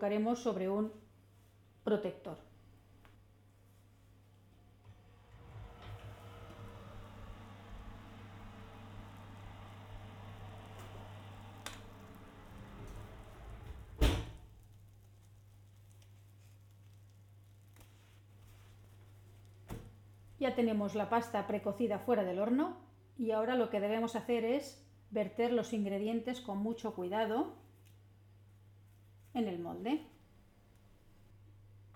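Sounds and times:
speech: 0:00.0 - 0:01.0, 0:01.8 - 0:02.5, 0:20.4 - 0:27.6, 0:29.3 - 0:30.2
faint steady low hum: 0:04.2 - 0:14.8.

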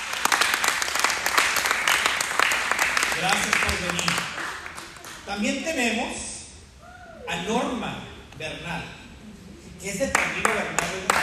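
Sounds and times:
audience applause: 0:00.0 - 0:05.3, 0:10.1 - 0:11.2
speech: 0:03.2 - 0:04.5, 0:05.3 - 0:06.3, 0:07.3 - 0:09.0, 0:09.8 - 0:11.2.

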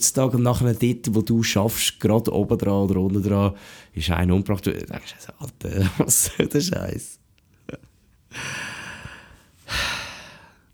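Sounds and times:
speech: 0:00.0 - 0:08.7
heavy panting breath: 0:08.3 - 0:10.6.

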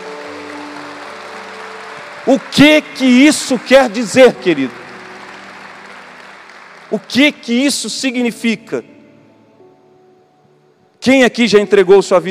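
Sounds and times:
audience applauding: 0:00.0 - 0:08.2
speech: 0:02.2 - 0:04.8, 0:06.9 - 0:09.0, 0:11.0 - 0:12.3.

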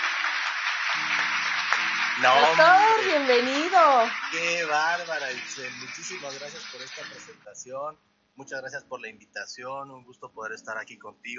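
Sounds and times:
audience applause: 0:00.0 - 0:07.3
speech: 0:02.2 - 0:11.3.

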